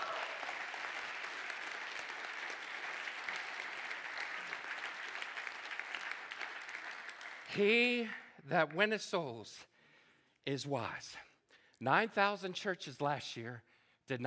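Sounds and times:
round of applause: 0:00.0 - 0:08.3
speech: 0:07.6 - 0:09.7, 0:10.4 - 0:14.2.

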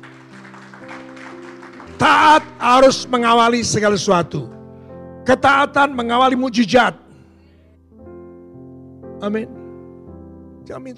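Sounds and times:
audience applause: 0:00.0 - 0:03.0
speech: 0:02.0 - 0:04.6, 0:05.3 - 0:07.0, 0:09.2 - 0:09.6, 0:10.7 - 0:10.9.

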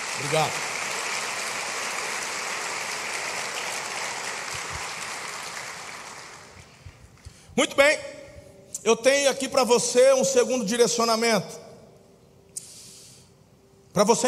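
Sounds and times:
audience applause: 0:00.0 - 0:06.8
speech: 0:00.2 - 0:00.7, 0:07.6 - 0:08.2, 0:08.8 - 0:11.6, 0:14.0 - 0:14.2.

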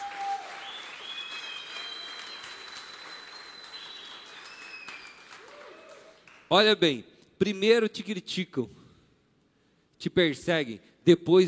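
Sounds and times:
crowd applauding: 0:00.0 - 0:06.5
high thin whistles: 0:00.6 - 0:05.2
speech: 0:06.5 - 0:08.8, 0:10.0 - 0:11.4.

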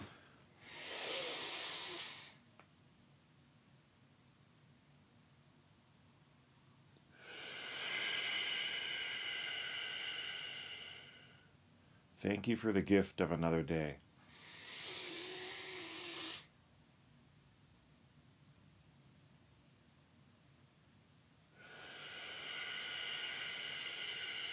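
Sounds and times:
deep forceful Wim Hof style breathing: 0:00.0 - 0:02.4, 0:07.1 - 0:11.5, 0:14.2 - 0:16.5, 0:21.6 - 0:24.5
speech: 0:12.2 - 0:14.0.

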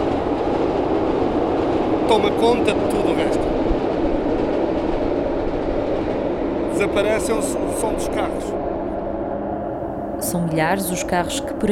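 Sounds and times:
train wheels on steel rails: 0:00.0 - 0:09.0
speech: 0:02.1 - 0:03.5, 0:06.8 - 0:08.7, 0:10.2 - 0:11.7.

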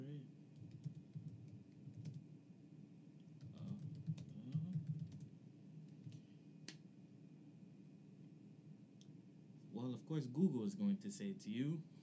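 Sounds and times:
low steady hum: 0:00.0 - 0:12.0
typing on a computer keyboard: 0:00.6 - 0:02.2, 0:03.4 - 0:06.3
speech: 0:09.8 - 0:12.0.

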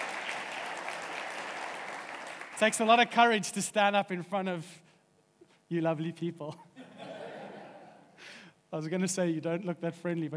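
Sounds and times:
audience applause: 0:00.0 - 0:02.8
speech: 0:02.6 - 0:04.8, 0:05.7 - 0:06.7, 0:08.7 - 0:10.3
laughter: 0:06.8 - 0:08.1.

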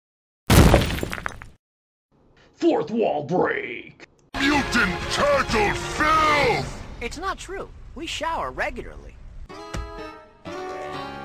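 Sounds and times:
glass shattering sound effect: 0:00.5 - 0:01.6
speech: 0:02.5 - 0:09.6.

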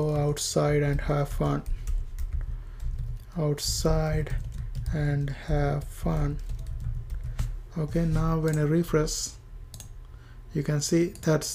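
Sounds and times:
speech: 0:00.0 - 0:01.8, 0:03.4 - 0:06.5, 0:07.8 - 0:09.4, 0:10.5 - 0:11.5
typing on a computer keyboard: 0:00.0 - 0:08.7, 0:09.7 - 0:09.9.

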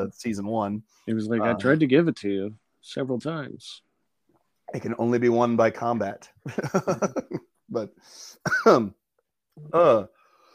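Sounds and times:
speech: 0:00.0 - 0:03.8, 0:04.7 - 0:09.0, 0:09.6 - 0:10.2
laughter: 0:06.5 - 0:07.6
person coughing from something going down the wrong pipe: 0:08.4 - 0:08.9.

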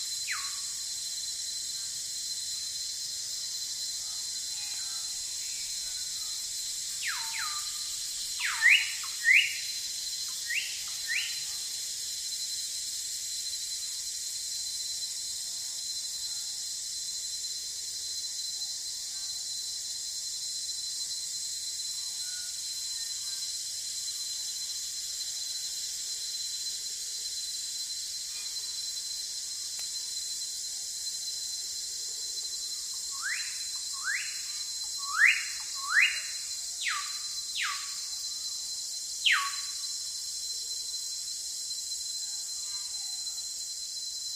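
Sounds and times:
steady high insect hiss in a forest: 0:00.0 - 0:44.3.

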